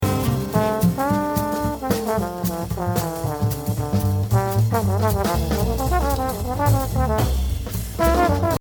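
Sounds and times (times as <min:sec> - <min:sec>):
jazz drumming exercise: 0:00.0 - 0:08.6.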